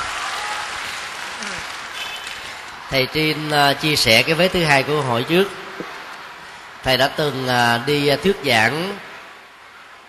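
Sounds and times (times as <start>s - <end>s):
audience applause for a question at a talk: 0.0s - 7.5s
speech: 2.9s - 5.6s, 6.8s - 9.1s.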